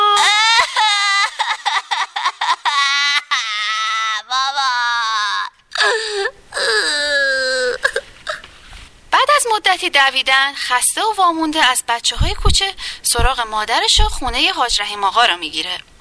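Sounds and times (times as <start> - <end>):
child crying and wailing: 0.0 - 8.4
speech: 9.8 - 15.9.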